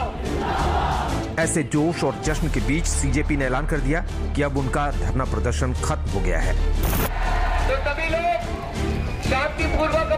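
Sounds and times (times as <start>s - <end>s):
protest crowd chanting a slogan: 0.1s - 1.3s
speech: 1.4s - 10.1s.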